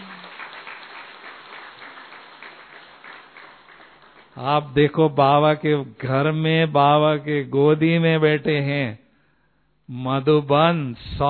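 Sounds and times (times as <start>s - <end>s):
crowd applause: 0.0s - 4.4s
speech: 4.4s - 9.0s, 9.9s - 11.2s.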